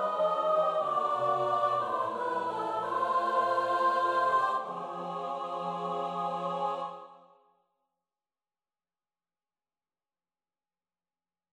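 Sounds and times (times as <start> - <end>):
kyrie mass setting music: 0.0 - 7.2.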